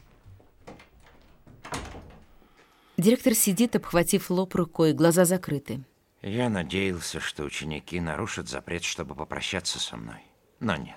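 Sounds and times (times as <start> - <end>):
door opening: 0.0 - 2.5
speech: 3.0 - 10.9.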